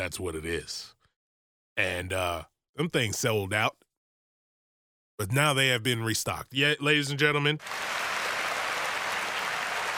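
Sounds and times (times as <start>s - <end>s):
speech: 0.0s - 1.0s, 1.8s - 3.8s, 5.2s - 8.1s
applause for a choir: 7.6s - 9.9s.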